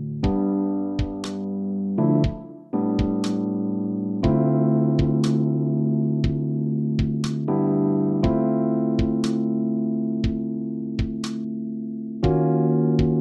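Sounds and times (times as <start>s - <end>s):
musical accompaniment: 0.2s - 11.5s, 12.2s - 13.1s.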